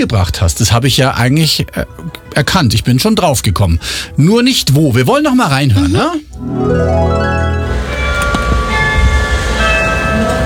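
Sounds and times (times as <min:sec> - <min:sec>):
speech: 0:00.0 - 0:07.4
church bells ringing: 0:06.4 - 0:10.4.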